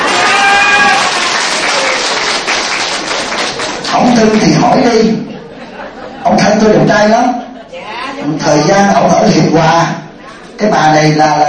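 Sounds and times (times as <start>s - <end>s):
audience applause during a Buddhist teacher's talk: 0.0s - 4.4s
speech: 4.0s - 5.3s, 6.3s - 7.4s, 8.2s - 10.0s, 10.6s - 11.4s
laughter: 4.9s - 8.4s.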